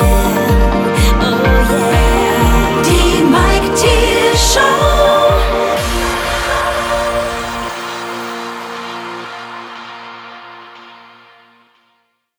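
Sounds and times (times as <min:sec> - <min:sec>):
ambient rock music: 0:00.0 - 0:12.0.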